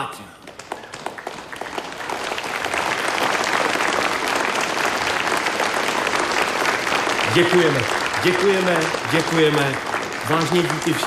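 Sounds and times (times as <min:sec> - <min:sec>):
theatre audience applause: 0:00.0 - 0:11.0
speech: 0:07.4 - 0:11.0.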